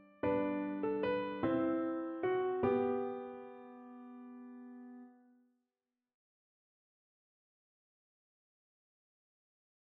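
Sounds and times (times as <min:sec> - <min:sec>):
piano piece: 0:00.0 - 0:05.3.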